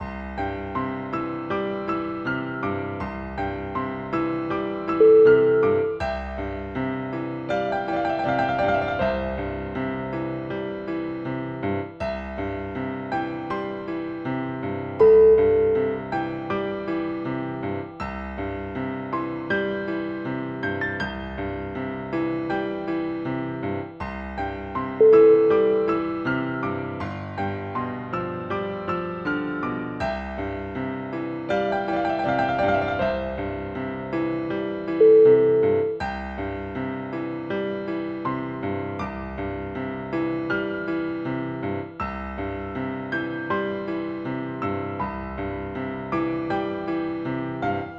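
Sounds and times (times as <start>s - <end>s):
Victorian piano music: 0.0s - 47.9s.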